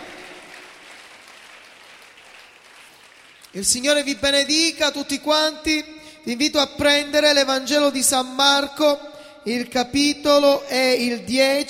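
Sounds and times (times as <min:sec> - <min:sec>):
audience applauding after prayer: 0:00.0 - 0:03.6
speech: 0:03.5 - 0:11.6.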